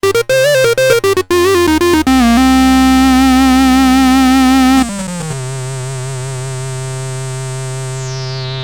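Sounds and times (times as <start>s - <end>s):
Minimoog synthesizer: 0.0s - 5.8s.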